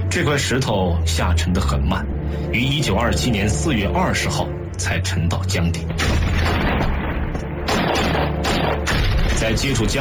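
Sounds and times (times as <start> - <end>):
speech: 0.1 - 7.0, 9.4 - 9.9
gunfire sound effect: 5.9 - 9.9.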